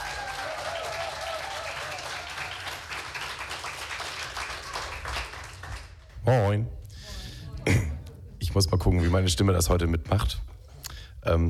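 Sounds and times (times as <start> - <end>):
faint whoops from the crowd: 0.0 - 2.8
crowd applauding: 0.0 - 6.2
speech: 6.3 - 6.8, 8.6 - 10.5, 11.3 - 11.4.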